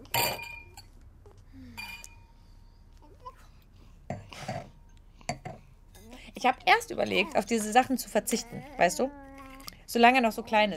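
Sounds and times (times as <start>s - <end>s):
glasses clinking in a toast: 0.0s - 1.0s, 1.8s - 2.3s, 4.1s - 6.0s
speech: 6.4s - 9.2s, 9.9s - 10.7s.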